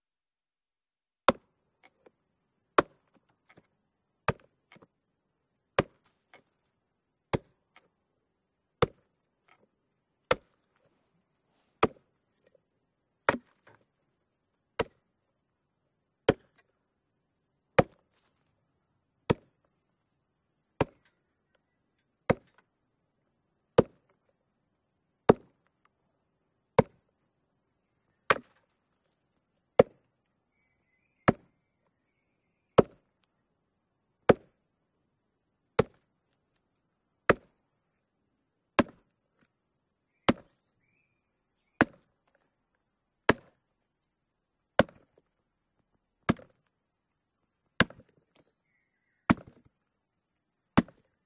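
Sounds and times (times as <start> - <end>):
axe chopping at 80 bpm: 1.3 - 1.5, 2.8 - 3.7, 4.3 - 4.9, 5.8 - 6.6, 7.3 - 7.6, 8.8 - 9.6, 10.2 - 10.9, 11.8 - 12.1, 13.2 - 13.8, 14.8 - 15.0, 16.2 - 16.6, 17.8 - 18.0, 19.3 - 19.6, 20.8 - 21.0, 22.3 - 22.6, 23.8 - 24.0, 25.3 - 25.6, 26.8 - 27.0, 28.3 - 28.6, 29.8 - 30.0, 31.2 - 31.5, 32.8 - 33.1, 34.3 - 34.6, 35.8 - 36.0, 37.3 - 37.5, 38.8 - 39.0, 40.3 - 40.5, 41.8 - 42.0, 43.3 - 43.6, 44.8 - 45.2, 46.3 - 46.6, 47.8 - 48.2, 49.3 - 49.6, 50.8 - 51.1.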